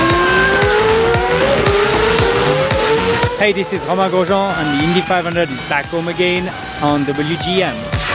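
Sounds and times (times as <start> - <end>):
Formula One car engine roaring: 0.0 - 8.1
rhythmic thumps: 0.0 - 8.1
faint tire squeal: 3.4 - 8.1
speech: 3.4 - 8.1.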